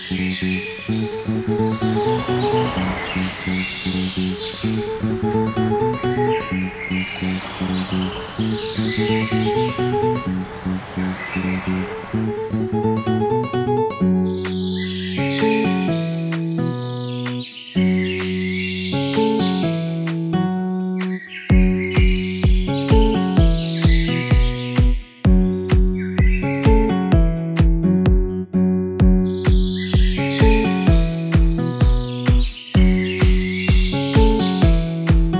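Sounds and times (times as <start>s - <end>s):
house music mix: 0.1s - 18.4s, 19.1s - 28.4s, 29.0s - 35.3s.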